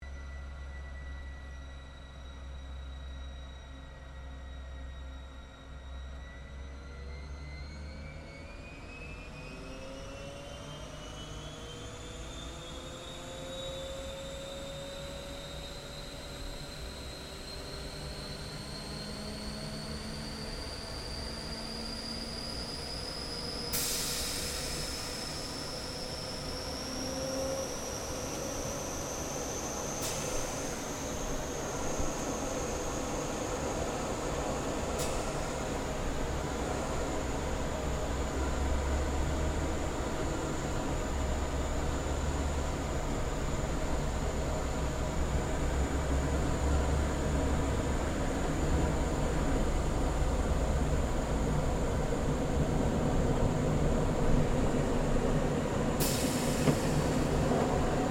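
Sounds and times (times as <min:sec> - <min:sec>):
Gloster Meteor F Mk8 fighter jet takeoff from interior: 0:00.0 - 0:58.0.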